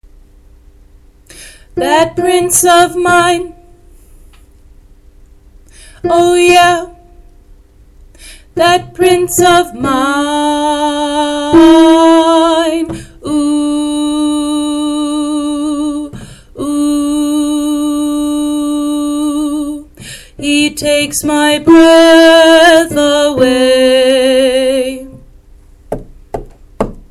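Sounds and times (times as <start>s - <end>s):
altos singing: 1.8s - 3.7s, 6.0s - 7.1s, 8.6s - 25.2s.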